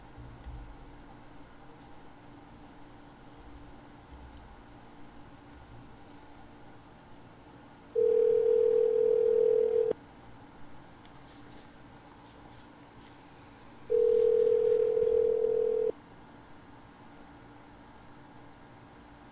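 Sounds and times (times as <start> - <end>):
telephone tones on a call to an apartment office's line: 8.0 - 10.0, 13.9 - 15.9.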